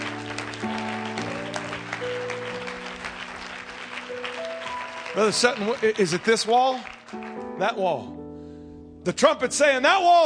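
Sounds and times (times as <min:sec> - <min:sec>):
audience clapping hands: 0:00.0 - 0:07.8
speech: 0:05.2 - 0:08.2, 0:09.0 - 0:10.2.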